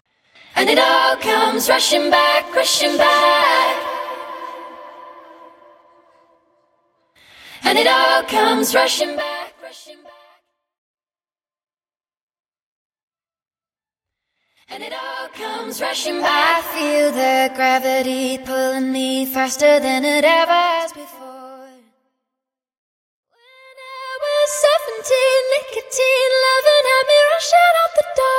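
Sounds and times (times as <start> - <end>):
a cappella singing: 0.4 - 6.5, 7.3 - 10.4, 14.6 - 21.9, 23.4 - 28.3.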